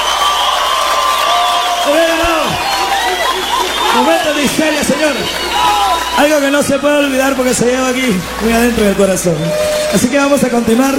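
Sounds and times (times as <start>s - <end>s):
shrill shouts and whoops: 0.0s - 7.1s, 9.2s - 10.4s
crowd applauding and cheering: 0.0s - 10.9s
laughter: 1.9s - 9.1s
speech: 4.0s - 10.9s.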